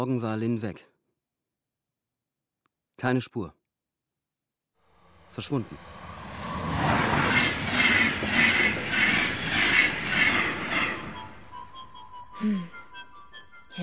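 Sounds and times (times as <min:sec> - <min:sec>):
speech: 0:00.0 - 0:00.9, 0:03.0 - 0:03.6, 0:05.4 - 0:05.9, 0:12.4 - 0:12.8
train rumbling along the rails with rhythmic clatter of wheels: 0:05.5 - 0:11.7
brief squeal-like tone: 0:08.6 - 0:13.6.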